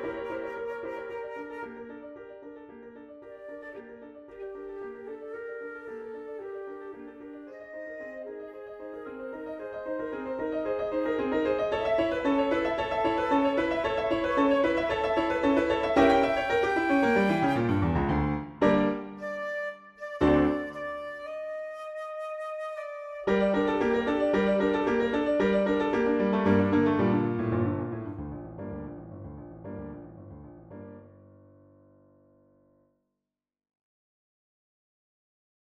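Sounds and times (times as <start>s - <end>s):
flute: 0.0s - 26.9s
piano: 0.0s - 32.9s.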